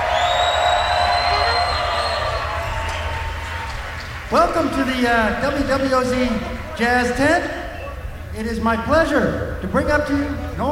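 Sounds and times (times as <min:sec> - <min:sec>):
thin high whistle-like tone: 0:00.0 - 0:03.4
crowd cheering in the WWOZ Jazz Tent at a music festival: 0:00.0 - 0:08.0
speech: 0:04.6 - 0:07.6, 0:08.4 - 0:10.7.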